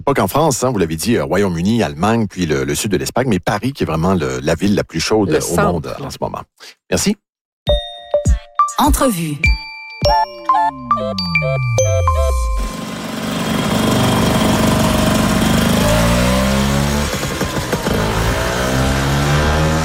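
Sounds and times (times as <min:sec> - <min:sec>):
speech: 0:00.0 - 0:07.8, 0:08.8 - 0:12.2
jingly chime-like tones: 0:07.7 - 0:12.9
Vespa scooter engine revving: 0:12.6 - 0:19.8.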